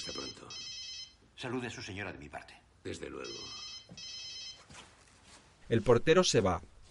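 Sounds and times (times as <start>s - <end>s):
mobile phone ringing: 0.0s - 1.2s, 3.2s - 4.8s
hiss: 0.0s - 6.8s
speech: 1.4s - 4.1s, 5.7s - 6.7s
faint rustling: 3.9s - 6.1s.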